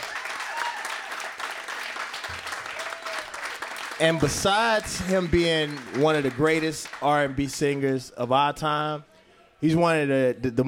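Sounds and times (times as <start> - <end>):
crowd applause: 0.0 - 7.8
speech: 4.0 - 10.6
crowd whistles: 4.6 - 6.2.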